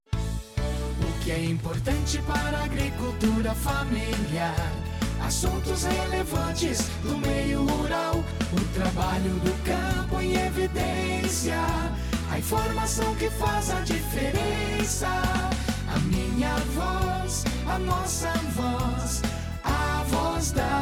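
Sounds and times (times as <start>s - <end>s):
instrumental music with ending: 0.1s - 20.8s.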